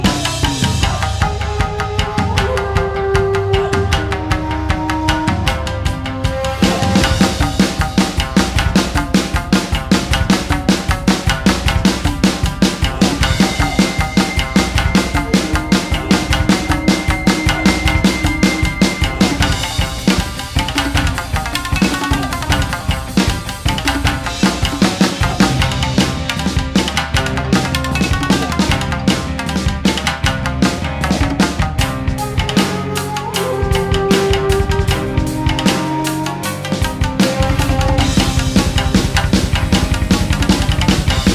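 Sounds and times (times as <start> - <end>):
shamisen samurai rock music: 0.0 - 41.3.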